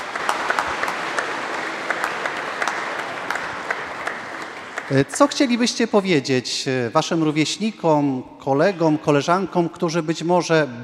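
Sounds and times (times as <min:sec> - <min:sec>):
audience applause: 0:00.0 - 0:05.6
speech: 0:04.9 - 0:10.8.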